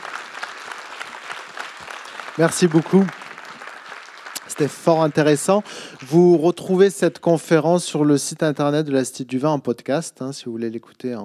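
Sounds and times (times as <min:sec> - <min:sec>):
audience applause: 0:00.0 - 0:06.4
speech: 0:02.4 - 0:03.2, 0:04.6 - 0:11.2.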